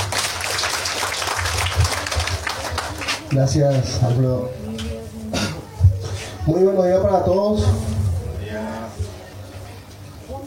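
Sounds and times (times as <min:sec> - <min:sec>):
crowd applause: 0:00.0 - 0:03.6
speech: 0:03.3 - 0:04.6, 0:06.4 - 0:08.0
low rumble: 0:07.6 - 0:09.2.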